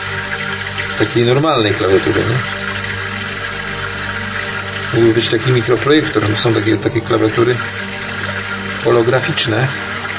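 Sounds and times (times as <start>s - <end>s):
tap water running over a dirty plate being washed: 0.0s - 10.1s
speech: 1.0s - 2.6s, 4.9s - 7.8s, 8.8s - 9.8s.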